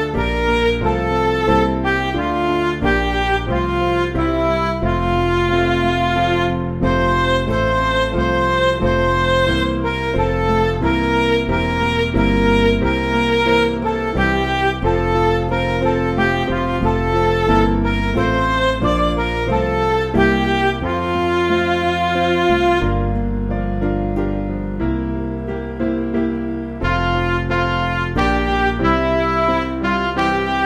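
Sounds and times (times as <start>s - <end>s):
MIDI national anthem music: 0.0s - 30.6s.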